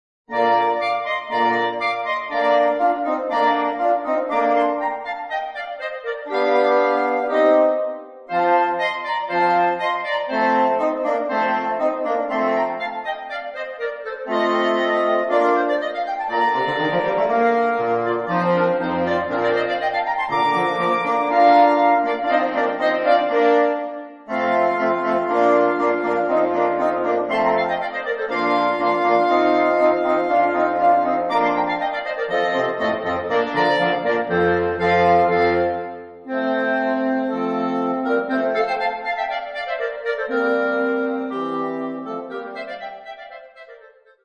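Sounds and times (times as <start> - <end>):
sextet playing: 0.3 - 43.9.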